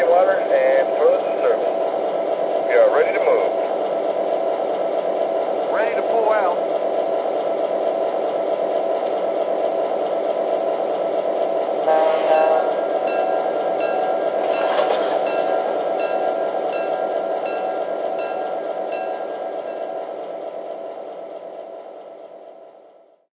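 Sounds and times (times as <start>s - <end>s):
trains: 0.0s - 23.3s.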